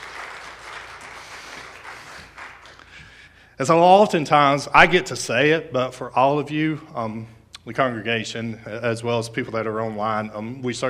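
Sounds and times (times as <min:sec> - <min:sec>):
audience applause: 0:00.0 - 0:02.9
speech: 0:03.6 - 0:10.8.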